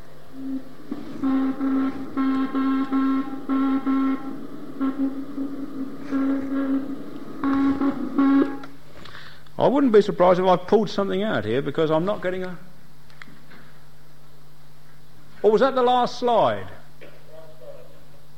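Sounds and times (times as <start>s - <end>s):
slowed-down satellite radio signal with Doppler shift: 0.3s - 8.8s
speech: 9.6s - 12.7s, 15.4s - 16.8s.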